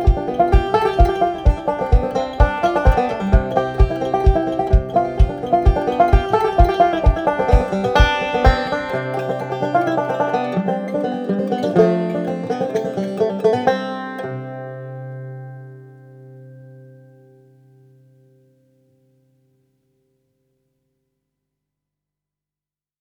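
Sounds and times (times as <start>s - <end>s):
banjo playing a polska: 0.0s - 18.2s.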